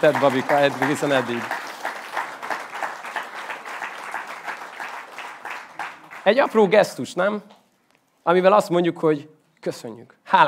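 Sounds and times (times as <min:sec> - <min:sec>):
speech: 0:00.0 - 0:01.6, 0:06.3 - 0:07.5, 0:08.2 - 0:10.4
audience applause: 0:00.0 - 0:06.7.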